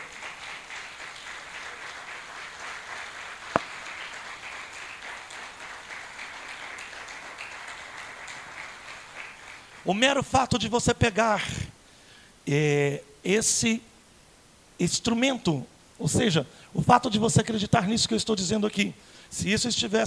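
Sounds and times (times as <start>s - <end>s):
crowd applause: 0.0s - 9.9s
sharp clap: 0.0s - 9.9s
speech: 9.8s - 11.6s, 12.5s - 13.9s, 14.8s - 20.0s.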